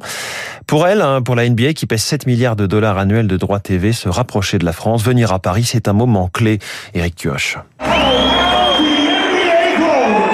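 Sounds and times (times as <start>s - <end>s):
speech: 0.7s - 8.3s
crowd cheering at an NBA basketball game in the Accor Arena in Paris: 7.8s - 10.3s
high whoops and shouts: 7.8s - 10.3s.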